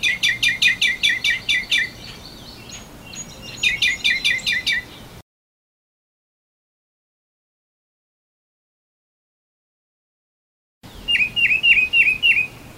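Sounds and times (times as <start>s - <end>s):
northern mockingbird singing: 0.0s - 5.2s, 10.9s - 12.7s.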